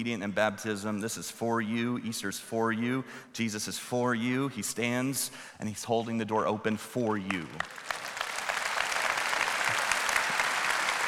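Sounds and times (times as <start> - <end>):
speech: 0.0 - 8.0
church congregation applauding on Easter: 7.3 - 11.0.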